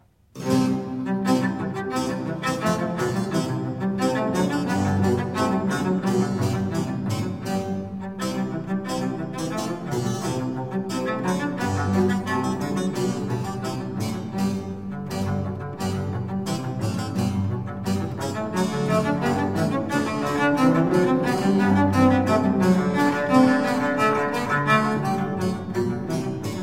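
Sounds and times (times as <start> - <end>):
baroque presto for cello and basso continuo: 0.4 - 26.6.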